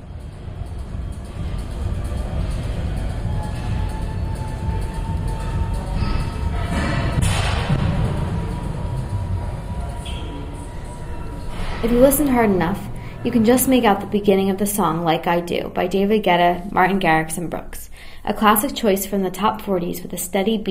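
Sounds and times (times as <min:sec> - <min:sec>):
running treadmills humming: 0:00.0 - 0:15.4
speech: 0:11.8 - 0:20.7.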